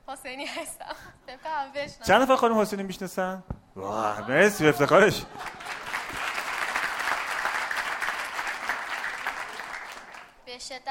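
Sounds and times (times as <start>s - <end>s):
speech: 0.1s - 5.5s
audience applause: 4.7s - 10.4s.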